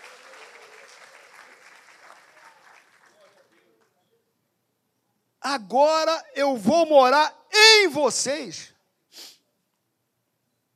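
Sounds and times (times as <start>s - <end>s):
audience applause: 0.0s - 3.7s
speech: 5.4s - 9.3s.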